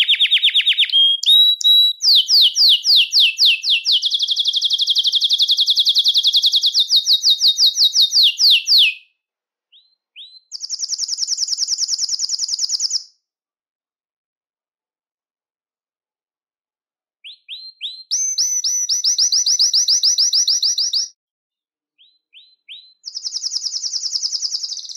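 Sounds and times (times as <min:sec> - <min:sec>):
Belgian canary giving short sharp high chirps: 0:00.0 - 0:13.2, 0:17.2 - 0:21.1, 0:22.0 - 0:24.9.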